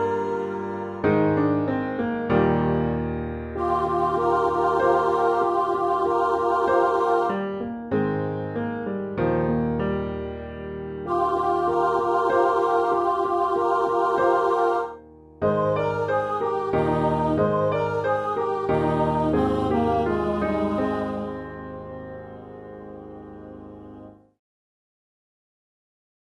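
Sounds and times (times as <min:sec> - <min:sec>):
piano: 0:00.0 - 0:24.4
alto: 0:03.2 - 0:07.8, 0:11.0 - 0:24.2.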